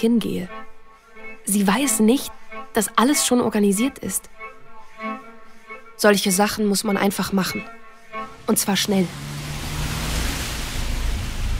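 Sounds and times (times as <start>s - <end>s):
speech: 0.0s - 0.6s, 1.4s - 4.4s, 6.0s - 9.4s
wind gusting: 8.2s - 11.5s
rain: 8.3s - 11.5s.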